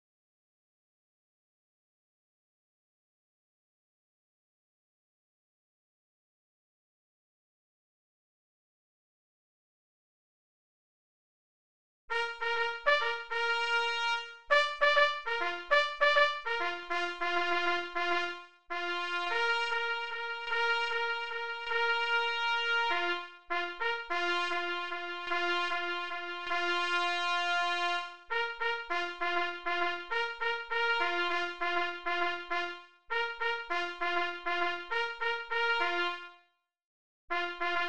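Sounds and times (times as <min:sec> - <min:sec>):
signal horn call: 0:12.1 - 0:36.5, 0:37.3 - 0:37.8.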